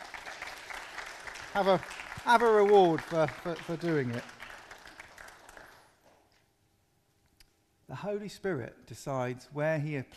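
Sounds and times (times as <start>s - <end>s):
round of applause: 0.0s - 6.3s
speech: 1.6s - 4.4s, 8.0s - 10.1s.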